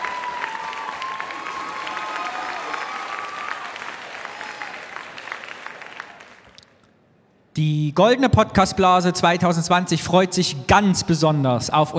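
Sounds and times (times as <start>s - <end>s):
audience applause: 0.0s - 6.7s
speech: 7.6s - 11.9s.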